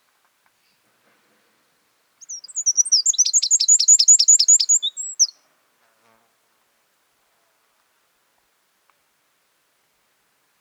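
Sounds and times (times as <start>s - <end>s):
Eurasian wren singing: 2.2s - 5.4s.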